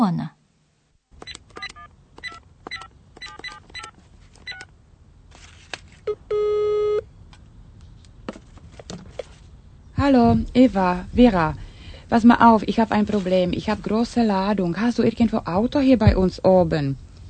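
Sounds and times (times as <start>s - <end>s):
speech: 0.0s - 0.4s, 10.1s - 17.0s
telephone key beeps from dialing: 1.2s - 4.7s.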